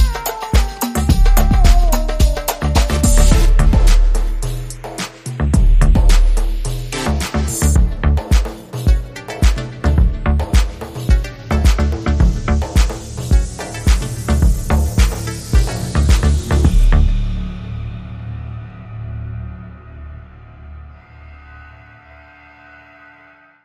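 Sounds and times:
Arabian house underscore music: 0.0 - 17.9.

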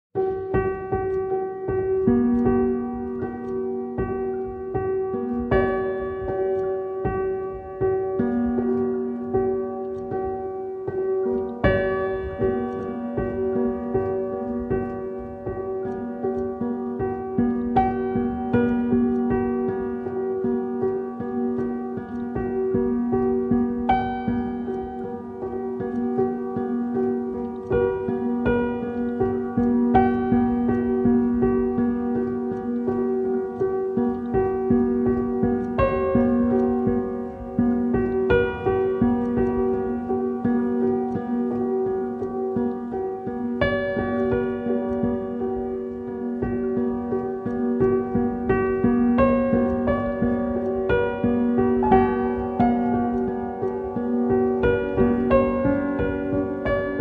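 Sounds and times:
pianos playing: 0.2 - 57.0.

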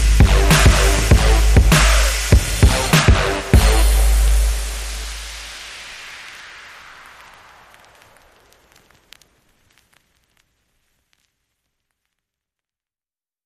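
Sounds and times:
boom bap underscore beat: 0.0 - 6.0.

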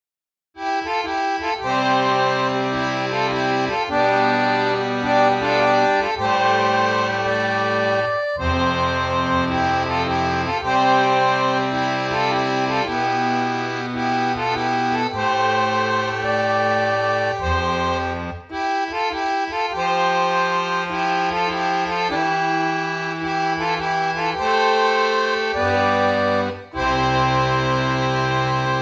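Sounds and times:
harmonium: 0.6 - 28.8.

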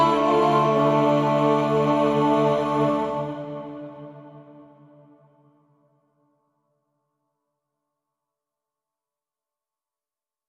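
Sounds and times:
choir stem: 0.0 - 5.4.

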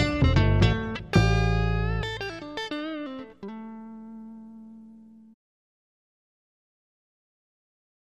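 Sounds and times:
Texas blues music: 0.0 - 5.4.

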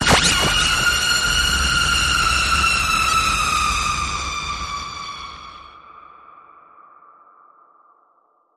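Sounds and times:
blast: 0.0 - 4.3.

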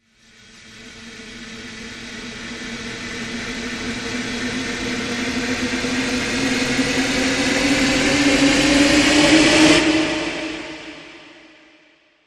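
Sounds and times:
long rising sound: 4.2 - 11.6.

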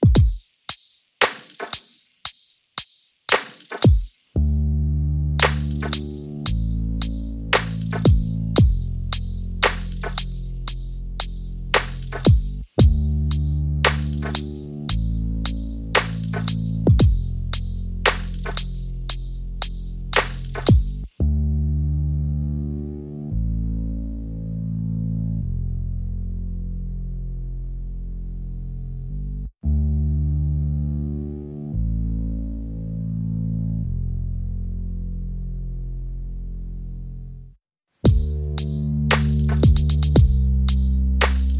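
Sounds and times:
drums: 0.0 - 4.4, 5.4 - 21.1, 38.0 - 41.5
bass: 4.3 - 41.5.

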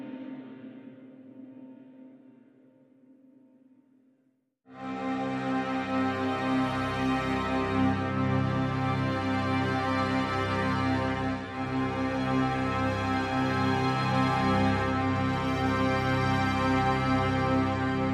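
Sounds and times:
strings: 4.7 - 18.1.

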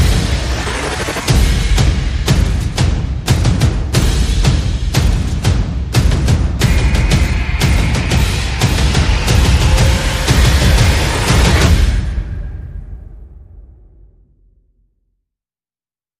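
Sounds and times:
sound effects: 0.0 - 1.6, 6.6 - 13.3
percussion: 0.0 - 14.1.

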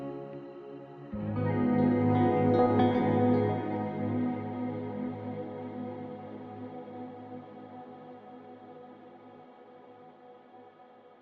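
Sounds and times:
guitars playing: 1.2 - 5.6.

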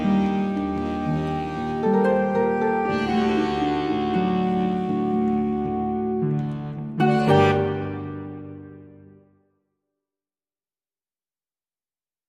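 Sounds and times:
Bavarian flamenco music without horns: 0.0 - 8.2.

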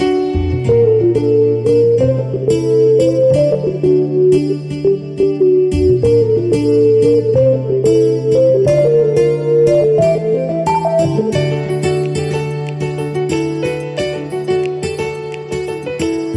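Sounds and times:
rhumba music: 0.1 - 16.3.

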